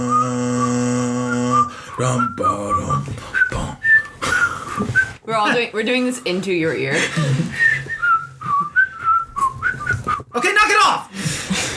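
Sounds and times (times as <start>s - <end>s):
person whistling a tune while walking: 0.0s - 5.2s, 7.5s - 10.4s
speech: 2.0s - 3.8s, 5.3s - 7.8s
footsteps: 2.9s - 5.3s, 6.6s - 10.4s
rustling: 3.2s - 5.2s, 7.6s - 10.4s.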